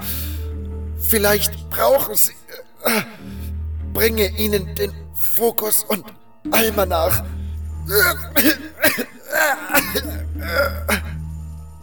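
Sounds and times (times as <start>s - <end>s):
speech: 1.1s - 3.4s, 4.0s - 11.2s
heavy rasping cough: 1.8s - 3.5s, 6.6s - 11.3s.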